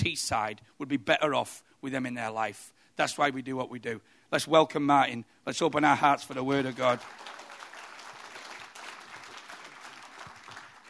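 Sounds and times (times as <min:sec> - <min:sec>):
speech: 0:00.1 - 0:07.4
audience applause: 0:06.4 - 0:10.8.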